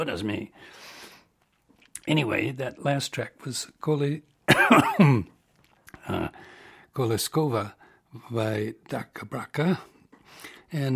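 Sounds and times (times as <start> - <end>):
speech: 0.0 - 0.9, 2.0 - 5.4, 6.1 - 10.9
person coughing after swallowing wrong: 4.5 - 5.4.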